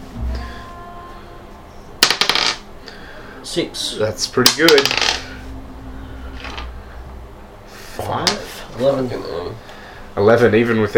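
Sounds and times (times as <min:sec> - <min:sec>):
two dice clattering across a hard surface: 0:02.0 - 0:02.6, 0:04.4 - 0:05.4, 0:06.4 - 0:06.7
speech: 0:03.4 - 0:05.2, 0:08.8 - 0:10.9.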